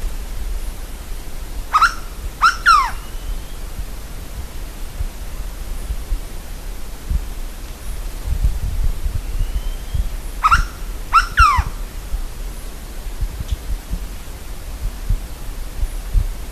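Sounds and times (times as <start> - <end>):
background hiss: 0.0 - 16.5
bird calling harshly: 1.7 - 3.6, 9.2 - 11.8.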